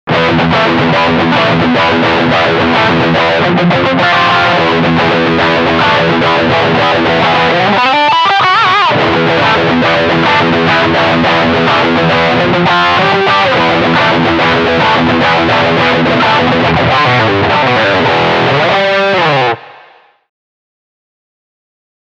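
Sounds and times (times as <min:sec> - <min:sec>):
high gain distortion: 0:00.1 - 0:20.2.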